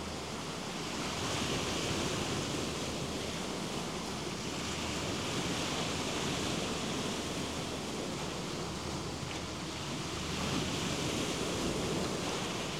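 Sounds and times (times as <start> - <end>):
cicada: 0.0 - 12.7.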